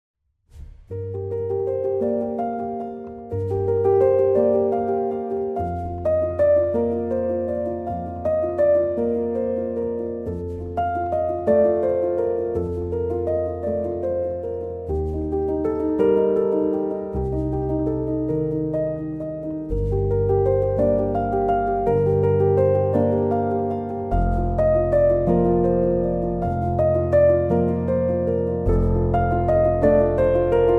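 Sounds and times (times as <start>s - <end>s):
piano: 0.5s - 30.7s.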